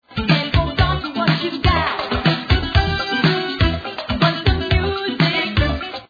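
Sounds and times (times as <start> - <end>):
conga drum: 0.2 - 6.0.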